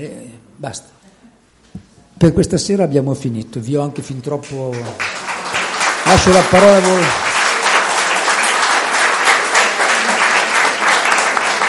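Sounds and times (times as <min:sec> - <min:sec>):
speech: 0:00.0 - 0:01.0, 0:02.2 - 0:05.2, 0:06.1 - 0:07.3
audience applause: 0:04.7 - 0:11.6.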